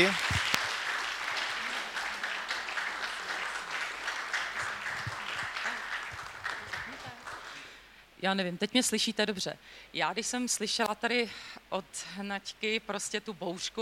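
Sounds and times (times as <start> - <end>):
speech: 0.0 - 0.4, 8.2 - 13.8
audience applause: 0.0 - 7.6.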